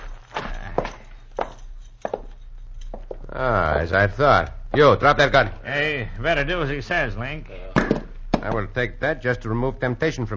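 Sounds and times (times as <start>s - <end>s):
heavy footsteps walking into a cabin: 0.0s - 3.3s
speech: 3.4s - 7.7s, 8.4s - 10.3s.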